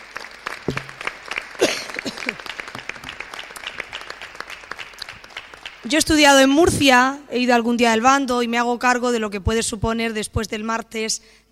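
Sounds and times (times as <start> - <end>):
audience applause: 0.0 - 5.9
speech: 5.8 - 11.5.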